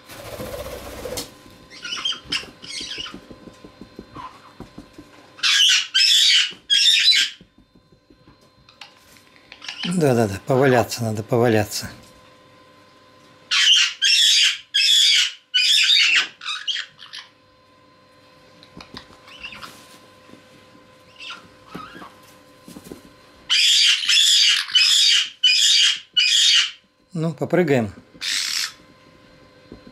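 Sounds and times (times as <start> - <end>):
caique squawking: 1.7 - 3.2, 5.4 - 7.4, 9.5 - 10.0, 13.5 - 17.3, 19.2 - 19.8, 21.1 - 22.1, 23.5 - 26.8, 28.2 - 28.8
speech: 10.0 - 12.0, 27.4 - 28.1.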